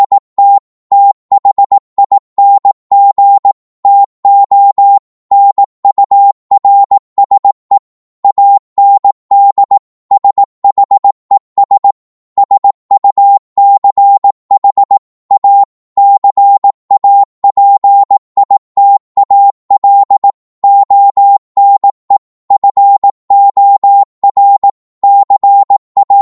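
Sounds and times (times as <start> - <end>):
Morse code at 18 words per minute: 0.0 - 18.6, 19.2 - 26.2.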